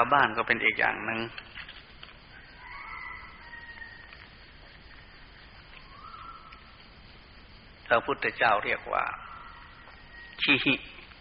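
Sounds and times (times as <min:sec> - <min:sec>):
speech: 0:00.0 - 0:01.8, 0:07.9 - 0:09.2, 0:10.4 - 0:11.0
steady hiss: 0:00.0 - 0:11.1
rooster crowing near daybreak: 0:02.2 - 0:05.0, 0:05.8 - 0:06.7, 0:09.0 - 0:10.6.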